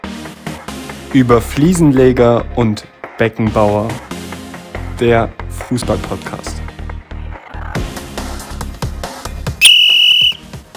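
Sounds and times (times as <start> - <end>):
speech: 1.1 - 4.0, 5.0 - 6.7
referee whistle: 9.6 - 10.4.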